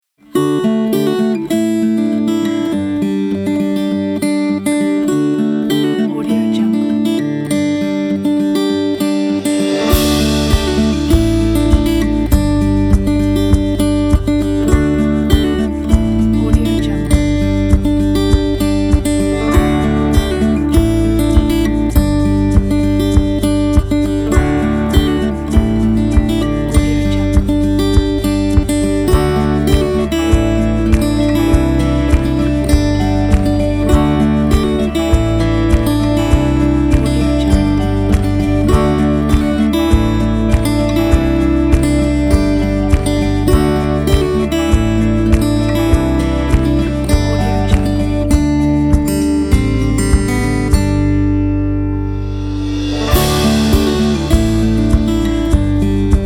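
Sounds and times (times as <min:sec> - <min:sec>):
acoustic folk travel music: 0:00.0 - 0:56.2.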